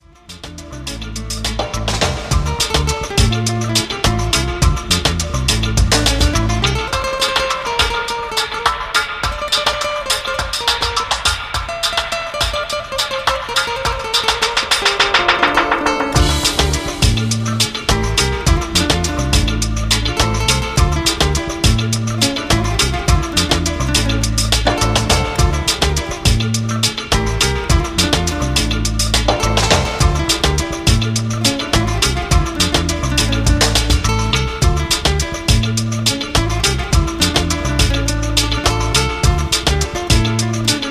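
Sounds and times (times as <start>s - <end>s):
alternative dub music: 0.0s - 12.9s, 13.5s - 40.9s.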